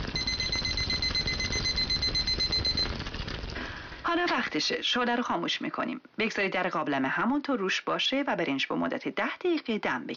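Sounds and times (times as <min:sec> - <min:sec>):
kitchen timer alarm beeping: 0:00.2 - 0:03.0
speech: 0:04.5 - 0:10.1.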